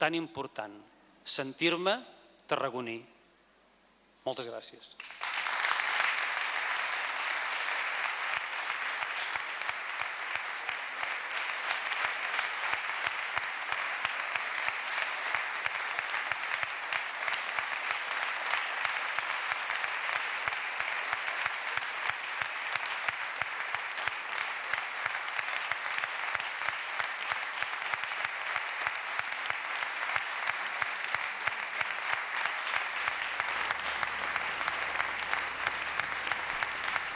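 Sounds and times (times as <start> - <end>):
speech: 0.0 - 3.2, 4.2 - 5.3
sustained applause from a large crowd: 5.0 - 37.1.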